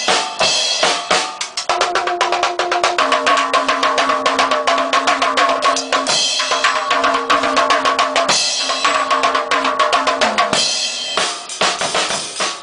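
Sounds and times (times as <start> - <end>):
drums playing: 0.0 - 12.6.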